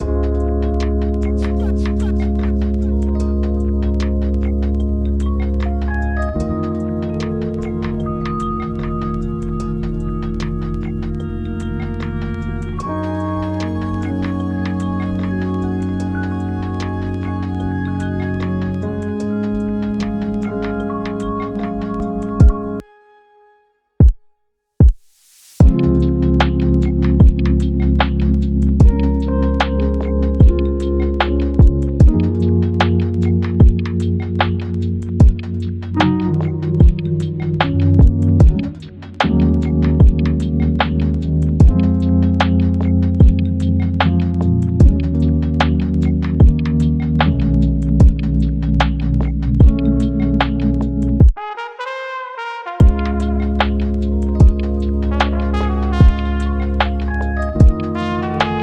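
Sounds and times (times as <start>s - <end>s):
lofi music: 0.0s - 24.2s, 25.3s - 58.6s.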